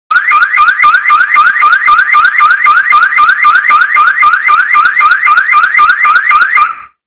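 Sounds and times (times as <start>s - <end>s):
alarm: 0.1s - 7.0s.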